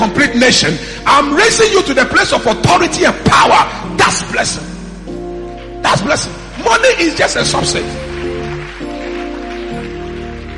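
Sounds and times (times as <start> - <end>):
speech: 0.0 - 4.8, 5.8 - 8.0
audience clapping: 5.5 - 10.5.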